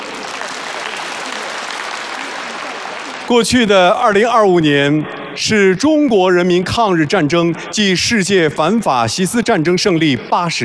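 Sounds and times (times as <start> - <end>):
large audience applause: 0.0 - 3.8
speech: 3.3 - 10.6.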